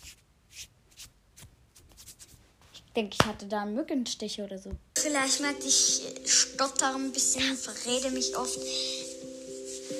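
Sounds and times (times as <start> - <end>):
scratching skin: 0.0 - 2.9
speech: 3.0 - 9.0.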